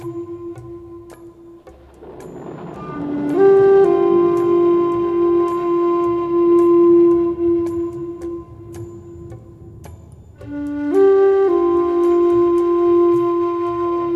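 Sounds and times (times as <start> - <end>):
relaxing Native American flute music: 0.0 - 14.1
thunder: 1.6 - 11.4.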